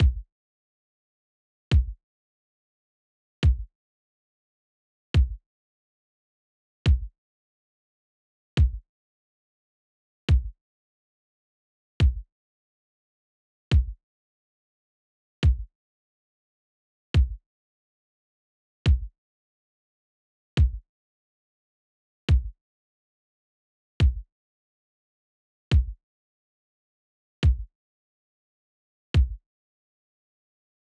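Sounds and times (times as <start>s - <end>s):
dub kick drum: 0.0s - 0.3s, 1.7s - 2.0s, 3.4s - 3.7s, 5.2s - 5.4s, 6.9s - 7.1s, 8.6s - 8.8s, 10.3s - 10.6s, 12.0s - 12.3s, 13.7s - 14.0s, 15.4s - 15.7s, 17.2s - 17.4s, 18.9s - 19.1s, 20.6s - 20.8s, 22.3s - 22.6s, 24.0s - 24.3s, 25.7s - 26.0s, 27.4s - 27.7s, 29.2s - 29.4s.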